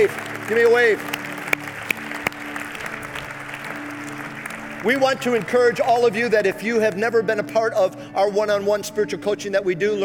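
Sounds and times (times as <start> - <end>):
speech: 0.0 - 1.2, 4.8 - 10.0
round of applause: 0.0 - 6.6.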